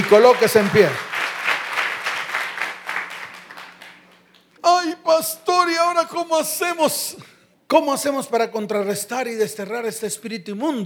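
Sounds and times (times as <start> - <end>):
applause: 0.0 - 4.4
speech: 0.1 - 1.1, 5.2 - 10.8.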